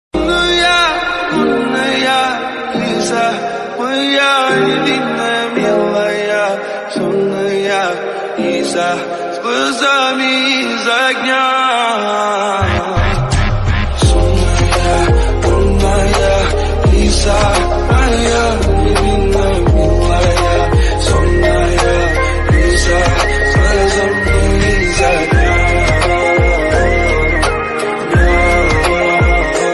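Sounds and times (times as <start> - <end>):
ringtone background music: 0.2 - 29.7.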